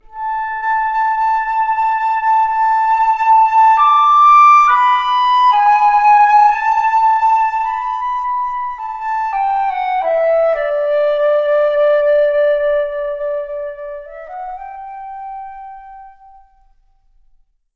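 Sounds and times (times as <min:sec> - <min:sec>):
flute: 0:00.0 - 0:16.9.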